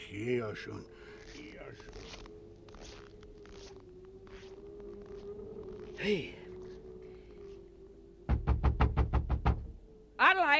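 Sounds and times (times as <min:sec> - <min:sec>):
speech: 0:00.1 - 0:01.1, 0:01.7 - 0:02.0, 0:06.0 - 0:06.4
heavy knocking on a door: 0:08.3 - 0:09.7.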